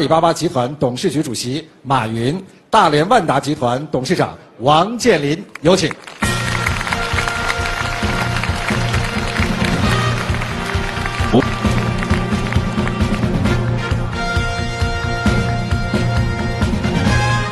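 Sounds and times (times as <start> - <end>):
speech: 0.0 - 6.2
steady music: 5.3 - 17.4
audience applause: 5.6 - 14.0.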